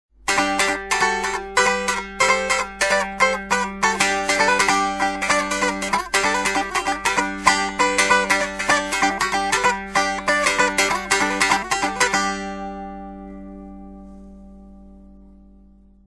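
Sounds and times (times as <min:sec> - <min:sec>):
strings strummed: 0:00.2 - 0:16.0.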